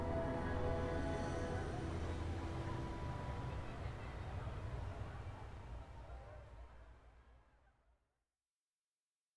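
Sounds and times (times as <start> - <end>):
roller coaster through a curve after a loop: 0.0 - 6.5.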